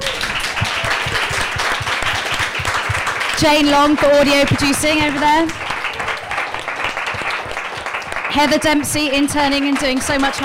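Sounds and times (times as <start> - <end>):
audience applause: 0.0 - 10.4
speech: 3.4 - 5.6, 8.3 - 10.4.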